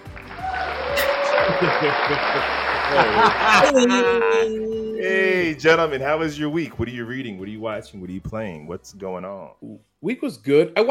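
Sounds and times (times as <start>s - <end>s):
applause: 0.0s - 3.7s
laughter: 1.1s - 5.1s
speech: 1.6s - 10.8s.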